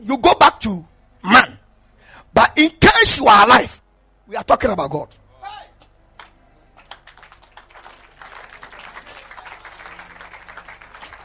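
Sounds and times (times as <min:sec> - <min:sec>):
speech: 0:00.0 - 0:00.9, 0:03.3 - 0:05.2
audience clapping during a religious talk: 0:06.2 - 0:11.2.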